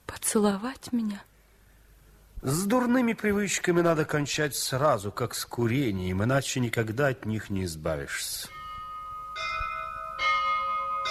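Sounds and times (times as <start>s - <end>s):
speech: 0.3s - 1.3s, 2.4s - 8.6s
bells ringing: 8.5s - 11.1s.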